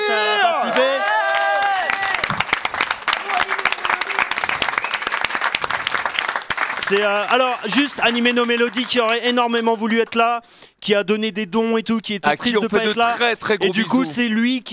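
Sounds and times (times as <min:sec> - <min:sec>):
crowd cheering and whooping: 0:00.0 - 0:06.5
audience applause: 0:00.6 - 0:10.0
speech: 0:06.9 - 0:14.7.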